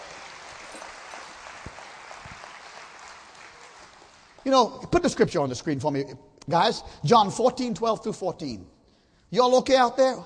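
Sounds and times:
audience clapping hands: 0.0s - 4.6s
speech: 4.4s - 8.7s, 9.3s - 10.2s.

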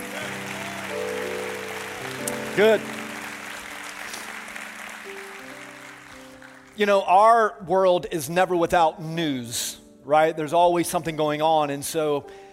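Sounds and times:
audience applauding: 0.0s - 7.1s
speech: 2.6s - 3.0s, 6.8s - 12.4s.

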